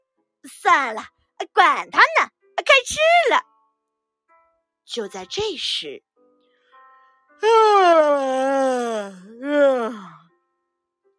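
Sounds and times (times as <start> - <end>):
speech: 0.7 - 3.5, 4.9 - 6.1, 7.4 - 10.2
voice imitating big yawns of piglets: 7.4 - 10.3.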